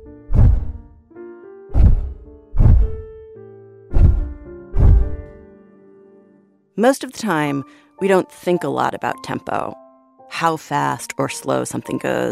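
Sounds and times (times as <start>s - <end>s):
slow elephant heartbeat: 0.3s - 0.8s, 1.7s - 3.0s, 3.9s - 5.2s
speech: 6.8s - 12.3s.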